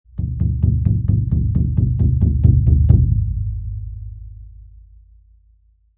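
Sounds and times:
cartoon bass drum heavy knocks: 0.1 - 4.7.

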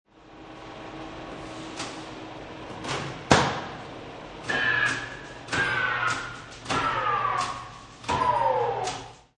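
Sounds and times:
industrial machine turned off and winding down: 4.4 - 9.3.

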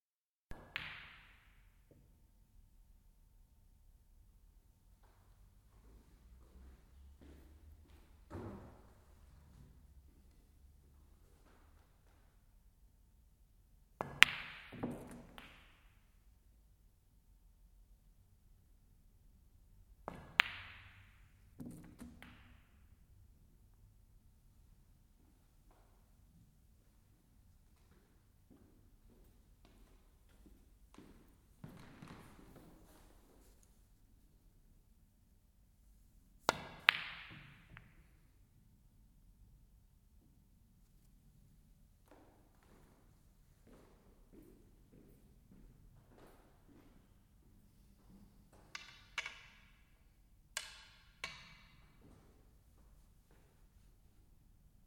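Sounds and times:
amateur players playing snooker: 0.5 - 2.1, 6.0 - 12.4, 14.0 - 16.1, 20.0 - 23.0, 27.8 - 33.8, 36.4 - 38.4, 44.7 - 52.3.

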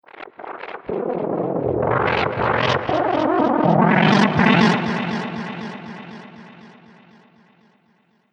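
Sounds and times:
chaotic electronic wind whoosh: 1.1 - 7.1.

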